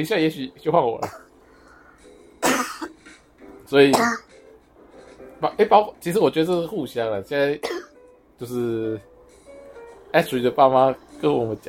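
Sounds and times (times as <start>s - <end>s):
speech: 0.0s - 1.2s, 3.7s - 4.3s, 5.4s - 7.8s, 8.4s - 9.1s, 10.1s - 11.6s
cough: 1.0s - 1.3s, 2.4s - 3.0s, 3.9s - 4.3s, 7.6s - 7.9s.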